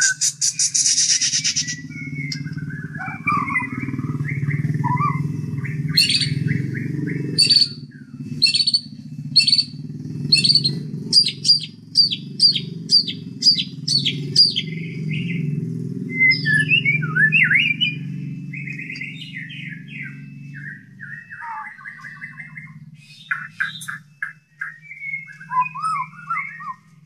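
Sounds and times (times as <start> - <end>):
White-rumped shama whistled song: 0.0 - 27.0.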